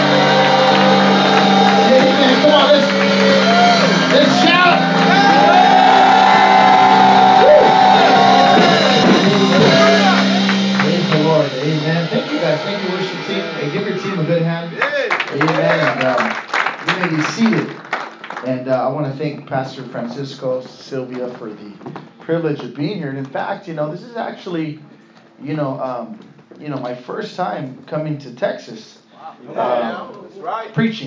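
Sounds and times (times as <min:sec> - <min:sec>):
audience clapping hands: 0:00.0 - 0:13.9, 0:14.8 - 0:18.7
speech: 0:19.5 - 0:31.0.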